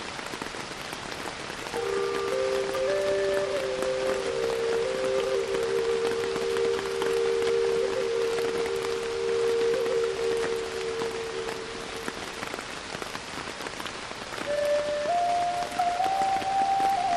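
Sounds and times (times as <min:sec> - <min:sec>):
steady rain: 0:00.0 - 0:17.1
wooden Native American flute playing slow held notes: 0:01.7 - 0:12.6, 0:14.4 - 0:17.1.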